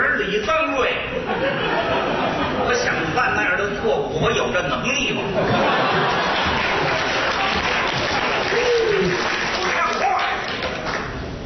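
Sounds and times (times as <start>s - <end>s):
speech: 0.2s - 2.1s, 2.7s - 6.4s
laughter: 1.1s - 3.1s, 5.2s - 10.0s
audience applause: 5.7s - 11.3s.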